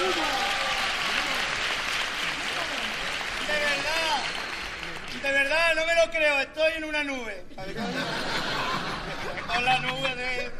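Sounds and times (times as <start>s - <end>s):
audience applause: 0.0s - 5.5s
speech: 5.3s - 10.5s
laughter: 7.5s - 10.5s.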